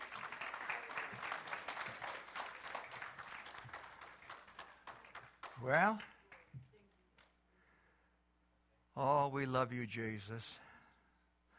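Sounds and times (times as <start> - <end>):
audience applause: 0.0 - 6.4
speech: 5.6 - 6.1, 9.0 - 10.7.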